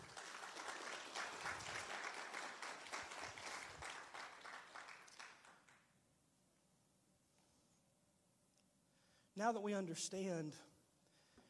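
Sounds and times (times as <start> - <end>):
audience applause: 0.0 - 5.8
speech: 9.4 - 10.7.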